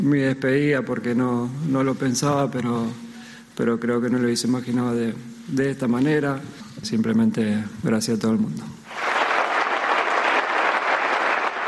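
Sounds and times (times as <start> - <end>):
speech: 0.0 - 9.1
audience ovation: 8.9 - 11.6.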